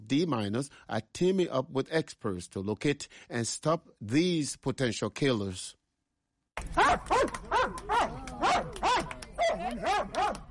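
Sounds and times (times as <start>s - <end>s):
speech: 0.1s - 5.8s, 6.6s - 10.4s
Belgian Malinois mine detection dog barking: 6.8s - 10.4s.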